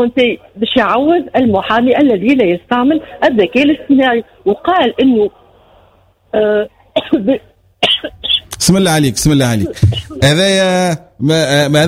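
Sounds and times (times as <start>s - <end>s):
speech: 0.0s - 5.4s, 6.3s - 11.8s
person coughing: 7.0s - 8.5s.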